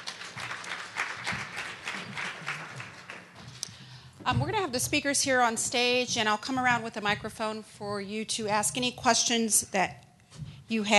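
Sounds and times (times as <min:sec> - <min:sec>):
audience round of applause: 0:00.0 - 0:03.6
speech: 0:04.3 - 0:10.0, 0:10.7 - 0:10.9.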